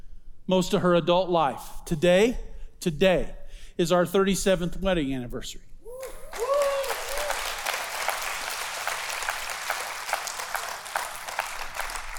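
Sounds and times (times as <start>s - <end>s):
speech: 0.5s - 5.7s
audience applause: 6.0s - 12.1s.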